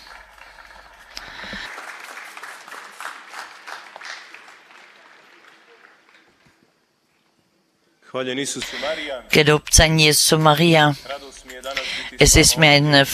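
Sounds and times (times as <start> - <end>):
crowd applause: 0.0 - 6.9
speech: 8.1 - 13.1.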